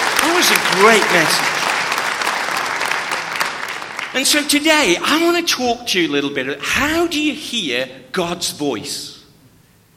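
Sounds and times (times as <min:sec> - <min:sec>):
audience applause: 0:00.0 - 0:04.6
speech: 0:00.4 - 0:01.5, 0:04.2 - 0:09.2.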